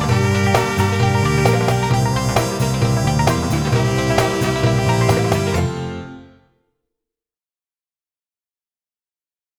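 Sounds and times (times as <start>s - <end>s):
instrumental music: 0.0s - 6.5s.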